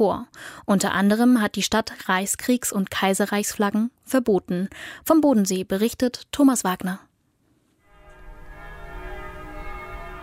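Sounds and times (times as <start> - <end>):
speech: 0.0 - 7.1
church bells of the Konstanz Minster ringing: 7.9 - 10.2.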